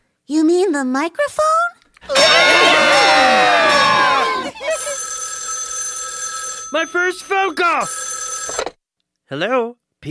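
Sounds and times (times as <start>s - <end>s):
speech: 0.3s - 2.9s, 6.7s - 8.7s, 9.3s - 10.1s
audience screaming loudly: 2.1s - 4.7s.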